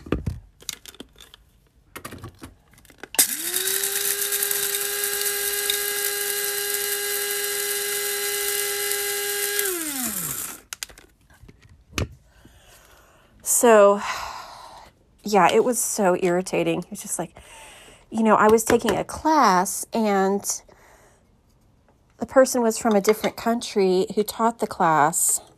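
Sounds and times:
electric coffee grinder grinding coffee beans: 3.2s - 10.8s
speech: 13.6s - 14.2s, 15.2s - 20.7s, 22.3s - 25.5s.

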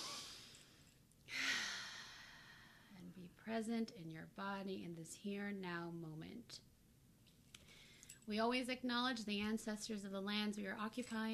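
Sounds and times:
deep breath in a quiet grounding moment: 0.0s - 3.0s, 7.6s - 8.2s
speech: 3.0s - 6.7s, 8.3s - 11.3s.

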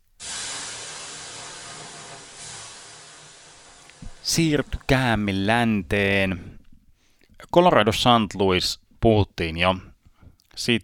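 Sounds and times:
person making hissing shush: 0.0s - 4.9s
speech: 4.3s - 6.5s, 7.5s - 9.9s, 10.6s - 10.8s.

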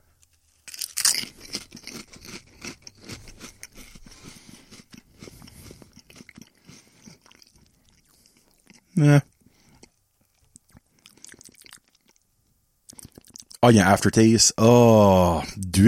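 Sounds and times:
large sour cream potato chips crunching as bitten and chewed: 0.2s - 8.9s, 9.8s - 12.2s
speech: 9.0s - 9.3s, 13.6s - 15.8s.

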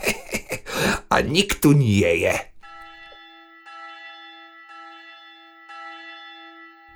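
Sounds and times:
laughter: 0.0s - 1.4s
speech: 1.1s - 2.5s
clock bell striking: 2.1s - 6.9s.

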